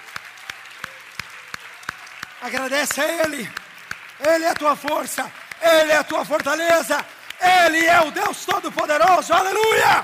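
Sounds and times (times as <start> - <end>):
audience clapping in unison: 0.0 - 10.0
crowd noise: 0.0 - 10.0
speech: 2.4 - 3.6, 4.2 - 10.0.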